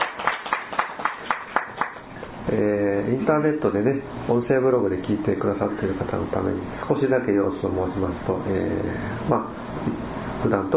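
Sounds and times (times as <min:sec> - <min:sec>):
group clapping: 0:00.0 - 0:02.1
speech: 0:02.5 - 0:10.7.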